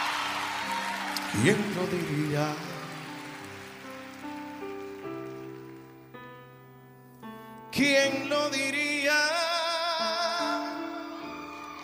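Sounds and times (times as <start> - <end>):
crowd applauding: 0.0 - 6.3, 10.5 - 11.8
speech: 1.3 - 2.7, 7.8 - 9.4.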